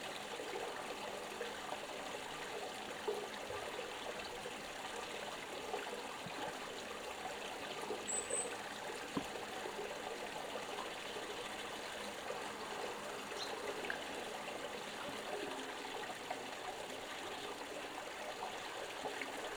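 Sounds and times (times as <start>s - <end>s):
stream flowing: 0.0s - 19.5s
birds: 8.0s - 8.6s.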